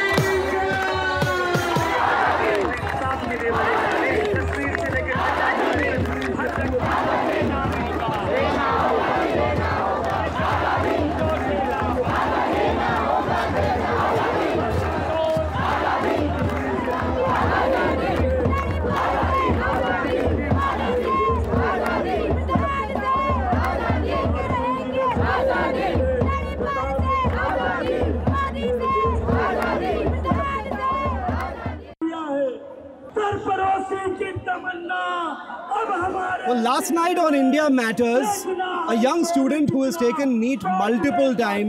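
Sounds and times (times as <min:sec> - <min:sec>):
crowd cheering and shouting off stage at a public event: 0:00.0 - 0:41.6
speech: 0:36.7 - 0:41.6.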